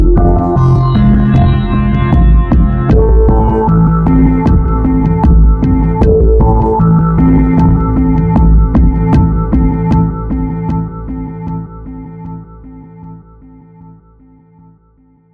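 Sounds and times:
rhythm with instruments: 0.0s - 11.6s.

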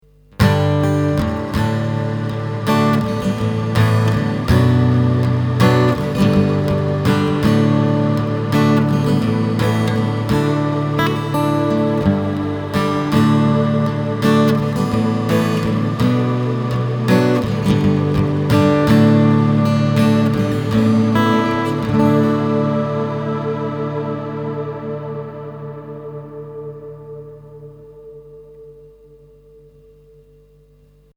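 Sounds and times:
ZOOM AC 3 pad output: 0.4s - 29.4s.

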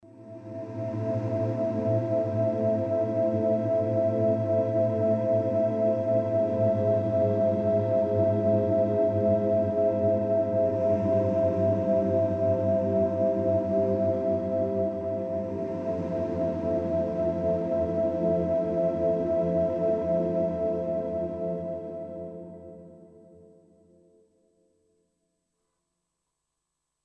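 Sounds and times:
gentle dark meditation synth pad: 0.1s - 24.3s.

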